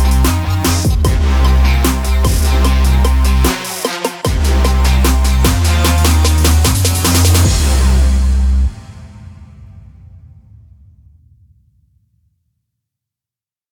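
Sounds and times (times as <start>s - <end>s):
trap beat: 0.0s - 8.6s.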